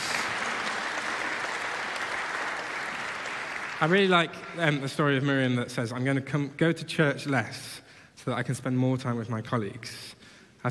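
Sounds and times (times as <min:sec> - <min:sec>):
round of applause: 0:00.0 - 0:05.1
speech: 0:03.8 - 0:10.7.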